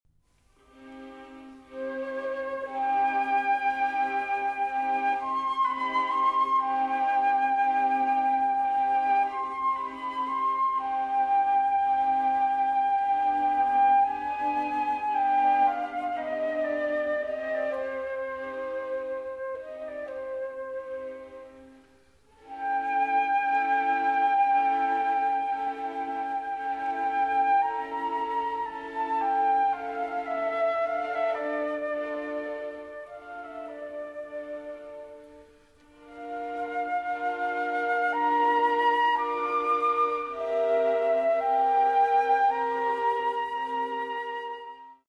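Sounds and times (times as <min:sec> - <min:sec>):
concerto for flute and strings in G minor: 0:00.2 - 0:45.0.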